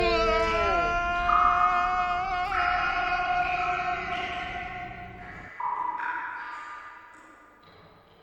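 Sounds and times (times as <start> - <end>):
people screaming: 0.0 - 5.2.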